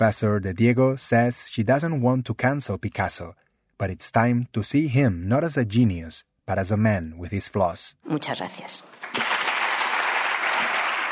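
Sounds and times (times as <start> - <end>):
speech: 0.0 - 9.3
audience applause: 9.0 - 11.1.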